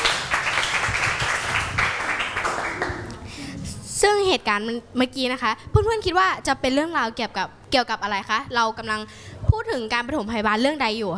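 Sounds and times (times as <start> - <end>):
audience applause: 0.0 - 3.3
speech: 4.0 - 11.1.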